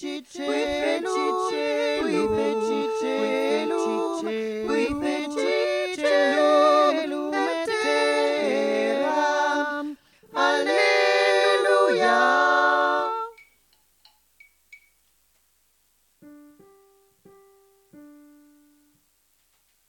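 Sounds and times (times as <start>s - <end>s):
choir singing tutti: 0.0s - 13.4s.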